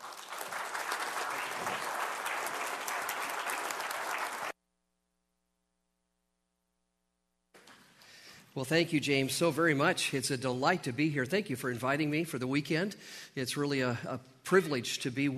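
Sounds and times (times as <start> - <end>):
audience applause welcoming a speaker: 0.0 - 4.6
speech: 8.6 - 15.3.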